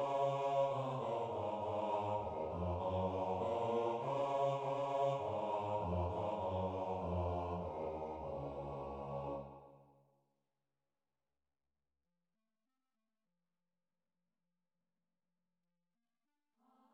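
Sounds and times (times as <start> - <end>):
bass: 0.6 - 9.4.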